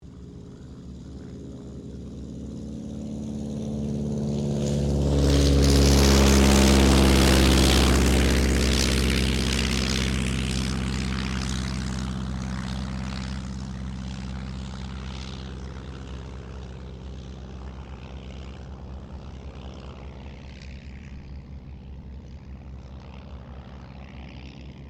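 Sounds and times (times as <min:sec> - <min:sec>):
de Havilland DH82A Tiger Moth taking off: 0:00.0 - 0:24.8.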